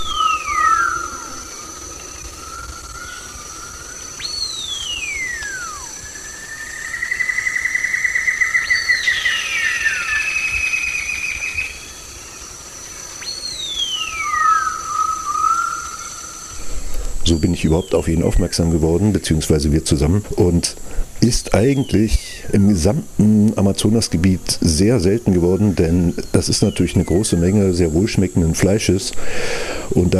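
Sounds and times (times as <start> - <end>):
steady high insect tone: 0.0 - 30.1
wattled curassow whistle: 2.3 - 11.8, 13.2 - 15.9
speech: 17.4 - 30.1.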